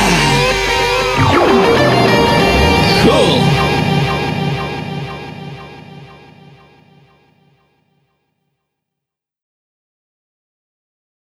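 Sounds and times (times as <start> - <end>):
children's game song: 0.2 - 7.2.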